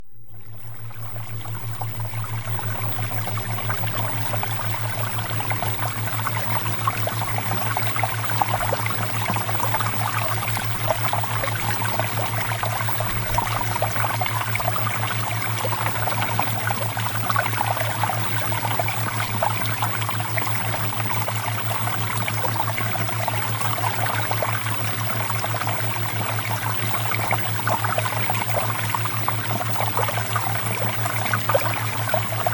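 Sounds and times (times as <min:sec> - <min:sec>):
flowing water: 0:00.3 - 0:32.5.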